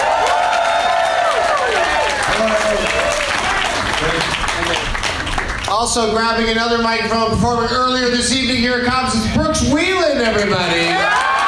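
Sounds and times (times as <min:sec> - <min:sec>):
audience whooping and shouting at Cobb's Comedy Club: 0:00.0 - 0:04.7, 0:10.8 - 0:11.4
audience clapping at Cobb's Comedy Club in San Francisco: 0:00.0 - 0:06.4, 0:10.9 - 0:11.4
speech: 0:05.8 - 0:11.3.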